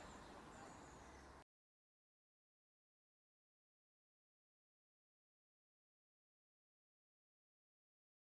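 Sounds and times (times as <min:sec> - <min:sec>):
Eurasian blue tit calling: 0:00.0 - 0:01.4.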